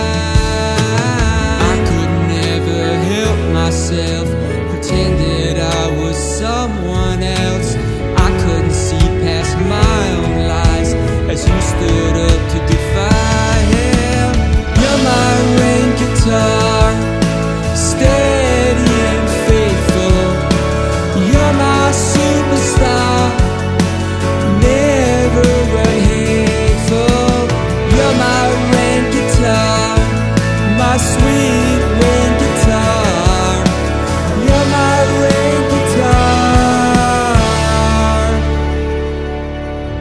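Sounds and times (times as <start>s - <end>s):
solo guitar music: 0.0s - 39.9s.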